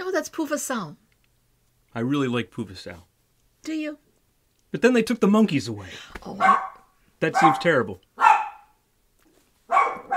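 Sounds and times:
speech: 0.2 - 1.0, 2.0 - 4.0, 4.7 - 8.3
dog barking: 6.4 - 8.8, 9.7 - 10.1.

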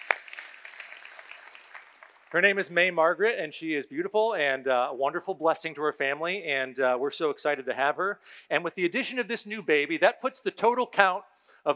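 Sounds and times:
audience clapping: 0.0 - 2.7
speech: 2.3 - 11.7.

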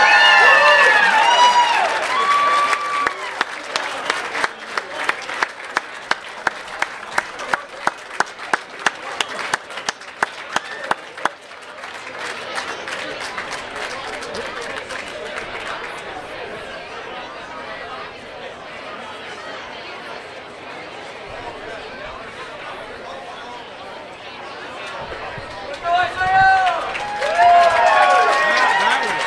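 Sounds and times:
whoops and cheers: 0.0 - 3.4, 26.2 - 29.2
crowd applauding: 0.0 - 18.5, 22.4 - 29.2.

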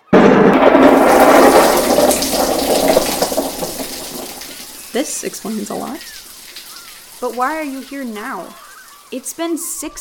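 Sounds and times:
thunderstorm thunder: 0.0 - 4.8
rain: 0.2 - 9.9
speech: 5.0 - 6.2, 7.2 - 9.9.

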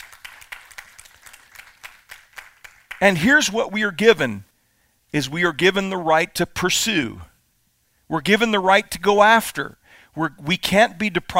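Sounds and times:
scattered audience applause: 0.0 - 3.0
speech: 3.0 - 4.5, 5.1 - 7.3, 8.1 - 11.3.

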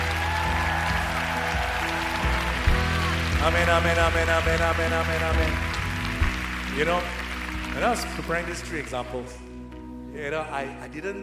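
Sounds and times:
church congregation clapping along during a morning worship service: 0.0 - 9.3
loud sustained keyboard-like music: 0.0 - 11.2
speech: 3.4 - 5.7, 6.7 - 9.4, 10.2 - 11.2.

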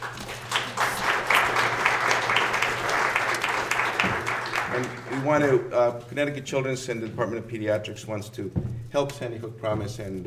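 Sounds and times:
audience applause: 0.0 - 5.6
speech: 4.8 - 10.2.

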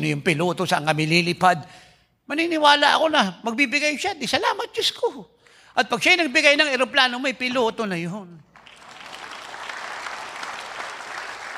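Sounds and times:
speech: 0.0 - 8.4
soft audience applause: 8.6 - 11.5.

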